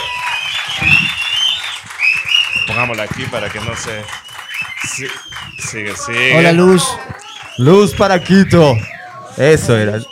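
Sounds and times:
audience applause: 0:00.0 - 0:09.2
high-pitched whistles and cheers: 0:00.0 - 0:10.0
speech: 0:02.9 - 0:10.0.

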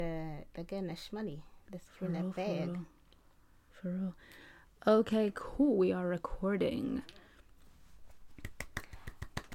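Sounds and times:
speech: 0:00.0 - 0:03.0, 0:03.8 - 0:07.2
hands clapping: 0:08.3 - 0:09.5.

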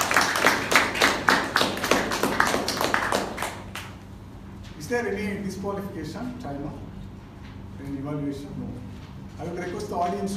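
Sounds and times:
small audience applauding: 0:00.0 - 0:04.0
speech: 0:04.9 - 0:07.0, 0:07.9 - 0:10.3.

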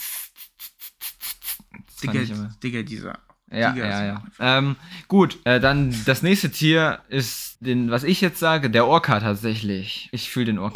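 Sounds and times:
voice imitating a snake's hiss: 0:00.0 - 0:01.7
speech: 0:02.0 - 0:10.7.

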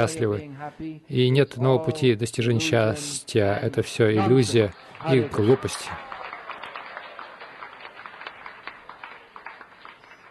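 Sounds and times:
speech: 0:00.0 - 0:06.1
audience applause: 0:04.3 - 0:10.2.

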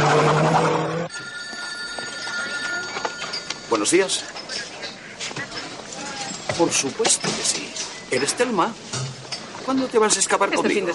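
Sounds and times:
telephone ringing in restaurant kitchen: 0:01.0 - 0:04.7
speech: 0:03.7 - 0:04.7, 0:06.6 - 0:09.0, 0:09.7 - 0:10.9.

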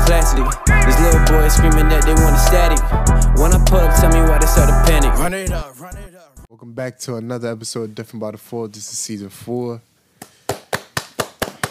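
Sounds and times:
speech: 0:00.2 - 0:10.3
sharp hand claps: 0:10.2 - 0:11.6.

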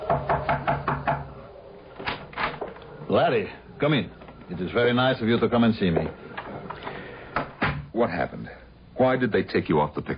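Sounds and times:
speech: 0:00.1 - 0:00.4, 0:03.1 - 0:06.2, 0:08.0 - 0:10.1
knocking on a door: 0:00.1 - 0:01.3.

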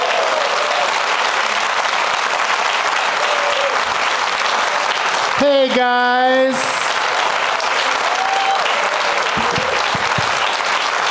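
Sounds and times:
people whooping: 0:00.0 - 0:01.3, 0:03.0 - 0:03.9, 0:07.6 - 0:10.7
audience applause: 0:00.0 - 0:11.0
speech: 0:05.4 - 0:06.7.

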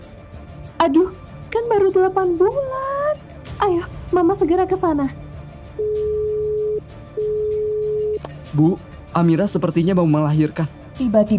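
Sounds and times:
speech: 0:00.8 - 0:02.9, 0:03.6 - 0:05.2, 0:08.5 - 0:11.3
telephone disconnected tone beeps: 0:05.8 - 0:08.2.

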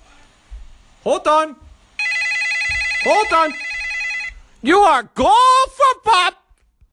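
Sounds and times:
speech: 0:01.0 - 0:01.6, 0:03.0 - 0:03.6, 0:04.6 - 0:06.4
telephone bell ringing: 0:02.0 - 0:04.4.

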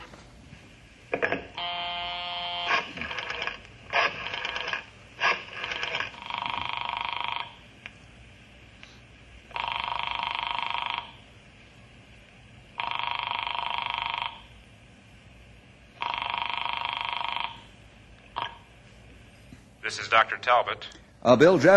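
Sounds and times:
telephone ringing: 0:01.2 - 0:07.6, 0:09.5 - 0:11.2, 0:12.8 - 0:14.6, 0:16.0 - 0:17.8, 0:18.4 - 0:18.7
speech: 0:19.9 - 0:21.7.

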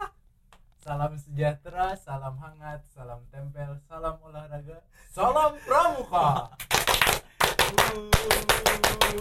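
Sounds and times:
speech: 0:00.9 - 0:09.1
scout clapping rhythm: 0:06.5 - 0:09.1.

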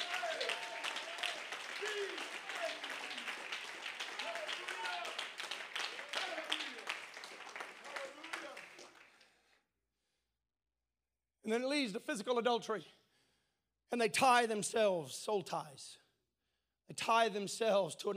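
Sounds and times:
audience clapping hands: 0:00.0 - 0:09.4
speech: 0:11.5 - 0:13.0, 0:13.9 - 0:16.0, 0:16.9 - 0:18.1.

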